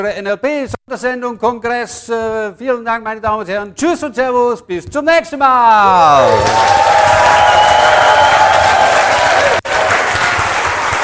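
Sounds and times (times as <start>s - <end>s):
speech: 0.0s - 7.5s
audience applause: 5.8s - 11.0s.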